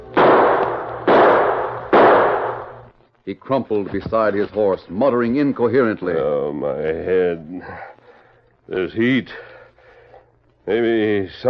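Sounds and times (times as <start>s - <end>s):
gunshot fired into the air: 0.2s - 2.9s
speech: 3.2s - 7.9s, 8.7s - 9.5s, 10.7s - 11.4s.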